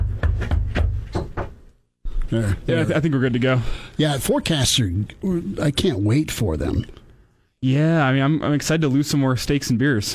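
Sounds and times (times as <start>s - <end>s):
knocking on a door: 0.0s - 1.6s
speech: 2.3s - 7.0s, 7.6s - 10.1s.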